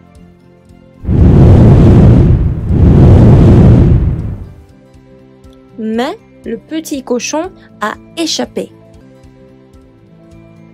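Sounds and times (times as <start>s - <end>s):
wolf blowing down straw house, roaring gusts of blown air: 1.0s - 4.6s
speech: 6.5s - 8.8s.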